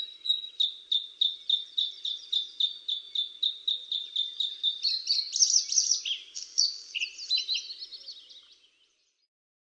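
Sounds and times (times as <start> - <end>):
birds singing: 0.0 - 9.3.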